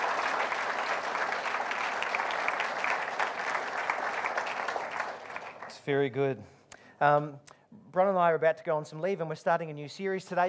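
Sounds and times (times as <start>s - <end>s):
audience applause: 0.0s - 5.8s
speech: 5.8s - 10.4s.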